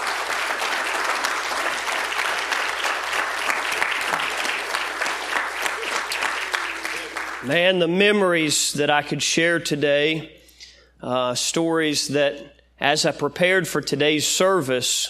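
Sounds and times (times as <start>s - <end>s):
audience applause: 0.0s - 7.5s
speech: 7.4s - 10.4s, 11.0s - 15.0s.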